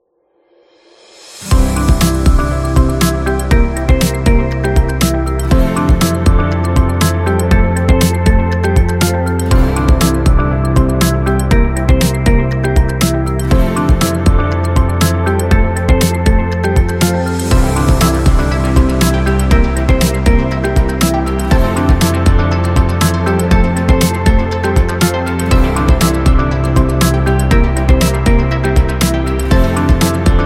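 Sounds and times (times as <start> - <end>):
upbeat tech music: 1.4 - 30.4.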